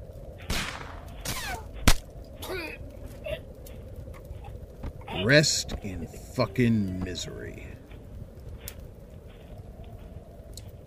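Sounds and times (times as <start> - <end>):
single gunshot in a tense film scene: 0.5 - 2.0
speech: 5.2 - 7.8.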